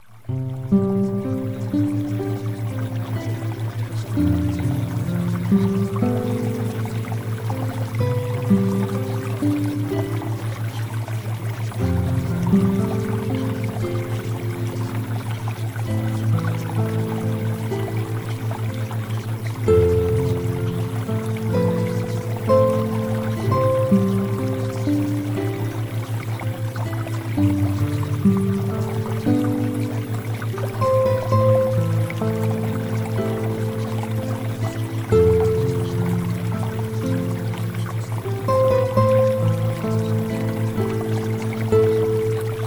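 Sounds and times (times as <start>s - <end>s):
theta wave music: 0.3s - 42.6s.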